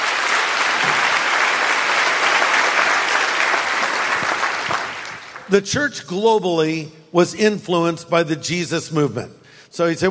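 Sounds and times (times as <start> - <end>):
church audience clapping: 0.0 - 5.7
speech: 5.5 - 10.1.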